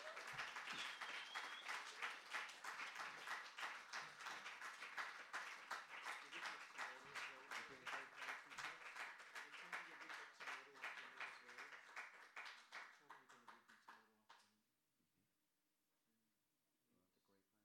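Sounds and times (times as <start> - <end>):
audience applause: 0.0 - 13.5.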